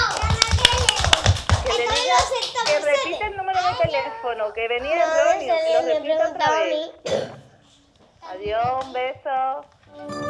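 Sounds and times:
scattered claps for a correct quiz answer: 0.0s - 3.9s
children's voices and chatter: 0.0s - 8.6s
speech: 4.1s - 7.4s, 8.3s - 10.2s.

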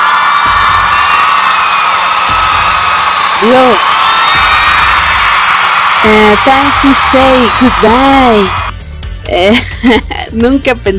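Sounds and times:
crowd ovation cheering and whooping: 0.0s - 8.7s
speech: 3.4s - 4.0s, 6.0s - 8.6s, 9.3s - 10.9s.

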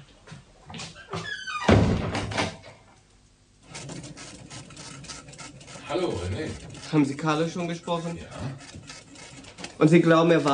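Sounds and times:
door creaking as it is shut: 0.8s - 2.8s
door closing thunk: 1.1s - 2.7s
speech: 6.0s - 8.8s, 9.8s - 10.5s.

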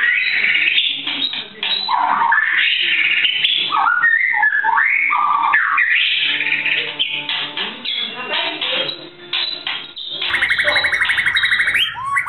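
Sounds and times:
white-rumped shama singing: 0.0s - 12.2s.

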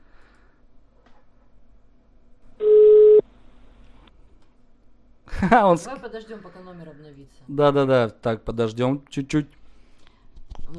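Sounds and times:
telephone line beep after dialing an unavailable subscriber: 2.6s - 3.2s
speech: 5.4s - 9.6s.

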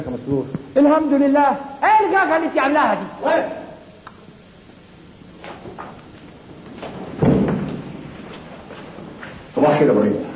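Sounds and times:
speech: 0.0s - 3.6s, 9.6s - 10.3s
pounding on a wooden door: 7.2s - 7.9s.

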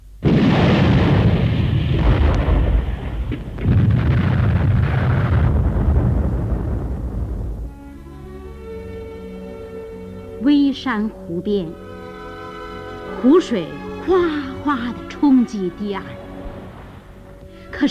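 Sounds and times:
artillery shells exploding: 0.2s - 7.8s
speech: 10.8s - 11.8s, 13.2s - 16.2s.

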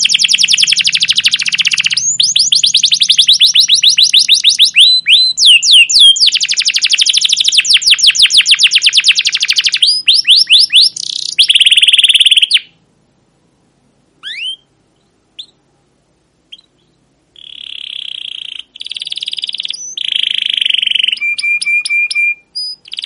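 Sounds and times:
captive canary singing chirps whistles and buzzy rattling rolls: 0.0s - 12.8s, 14.2s - 15.6s, 16.4s - 23.0s.

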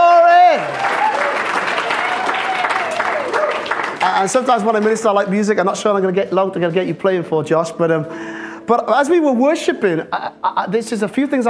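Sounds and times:
audience applause for the worship team: 0.0s - 5.1s
speech: 4.2s - 11.4s.

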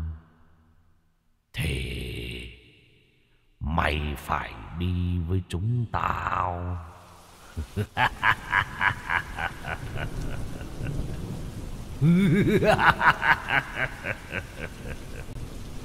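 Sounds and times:
speech: 3.8s - 7.0s, 7.6s - 11.1s, 12.0s - 15.3s
rain and wind: 4.0s - 15.8s
eerie laughter: 7.6s - 11.2s, 12.0s - 15.4s.

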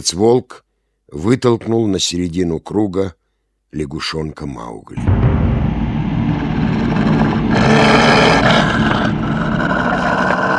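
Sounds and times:
speech: 0.0s - 5.5s
deep muffled roar from behind a rock: 5.0s - 10.5s.

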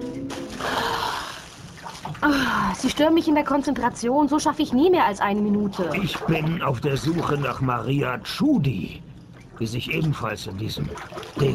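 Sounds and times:
water splashing as a head surfaces from a clear water-filled tub: 0.3s - 2.9s, 5.3s - 8.1s, 9.4s - 11.5s
speech: 2.2s - 11.5s.

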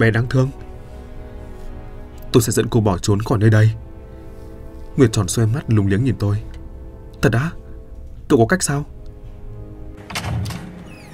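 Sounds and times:
speech: 0.0s - 0.6s, 2.3s - 3.8s, 5.0s - 6.6s, 7.2s - 7.6s, 8.3s - 8.9s
door creaking open: 10.0s - 11.1s.

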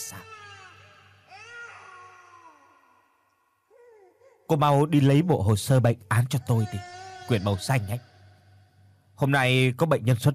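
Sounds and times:
baby crying: 0.0s - 4.6s, 6.3s - 8.4s
speech: 4.5s - 8.1s, 9.2s - 10.3s.

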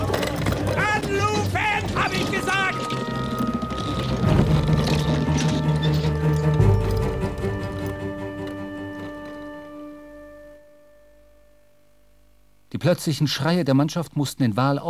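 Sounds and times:
boats being lowered from a ship into the water: 0.0s - 9.4s
steady humming drone: 0.0s - 12.1s
speech: 12.8s - 14.8s.

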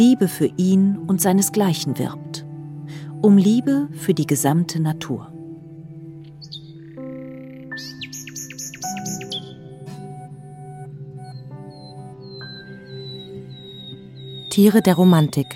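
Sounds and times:
speech: 0.0s - 5.4s, 14.6s - 15.5s
nightingale song: 6.0s - 15.5s.

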